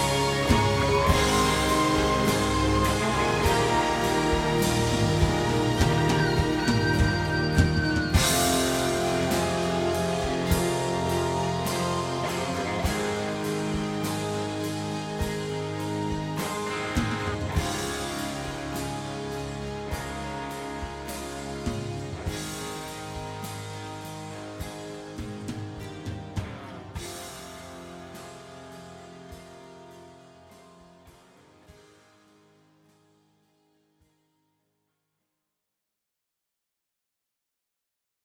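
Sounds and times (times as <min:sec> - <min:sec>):
modulated guitar solo: 0:00.0 - 0:27.2.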